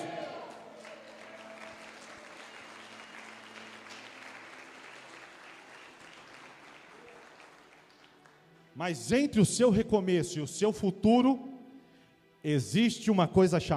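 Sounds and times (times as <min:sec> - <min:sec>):
audience applause: 0:00.0 - 0:08.7
speech: 0:08.8 - 0:11.5, 0:12.4 - 0:13.7.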